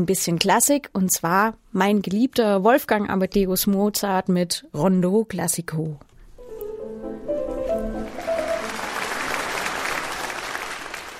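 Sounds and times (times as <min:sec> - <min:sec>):
speech: 0:00.0 - 0:06.1
roaring applause: 0:08.0 - 0:11.1.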